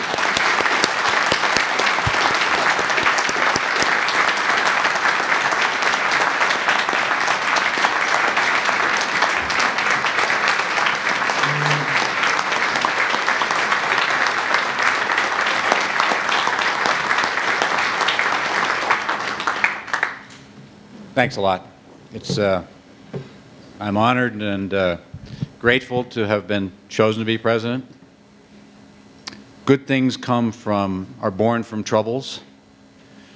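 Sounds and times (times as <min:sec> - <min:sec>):
audience applause for an award: 0:00.0 - 0:20.3
speech: 0:21.2 - 0:22.7, 0:23.8 - 0:27.9, 0:29.7 - 0:32.5.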